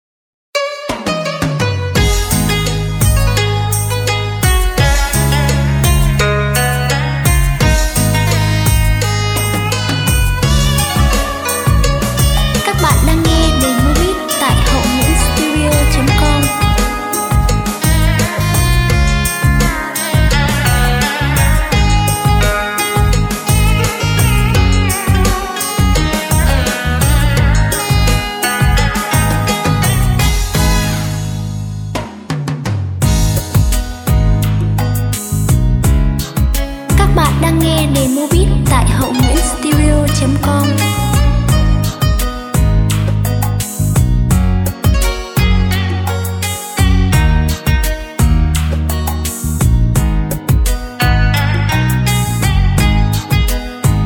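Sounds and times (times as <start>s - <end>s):
music beat playback: 0.9s - 54.0s.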